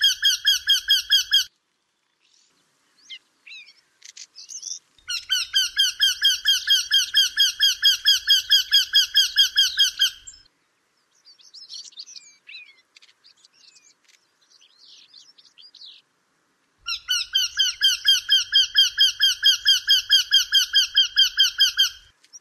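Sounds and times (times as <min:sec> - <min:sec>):
Eurasian wryneck calling: 0:00.0 - 0:01.5, 0:04.5 - 0:10.5, 0:16.8 - 0:22.2.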